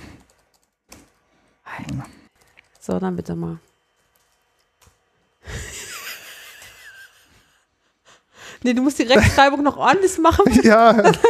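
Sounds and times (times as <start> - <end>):
keyboard typing of a flirt text message: 0.0 - 5.3
speech: 1.8 - 2.2, 2.9 - 3.7, 8.6 - 11.2
laughter: 5.4 - 7.6, 9.2 - 11.2.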